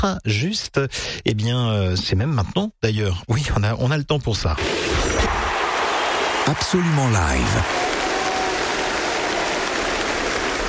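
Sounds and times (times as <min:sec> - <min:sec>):
speech: 0:00.0 - 0:05.3, 0:06.5 - 0:07.8
concert audience applauding: 0:05.3 - 0:10.6.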